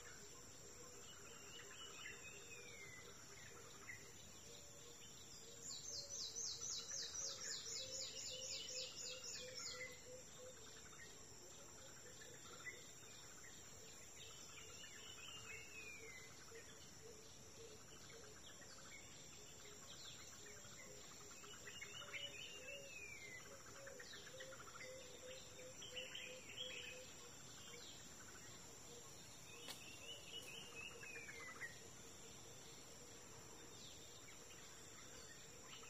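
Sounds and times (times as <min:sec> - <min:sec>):
forest ambience at dawn in Kuma Apoti Togo: 0:00.0 - 0:35.8.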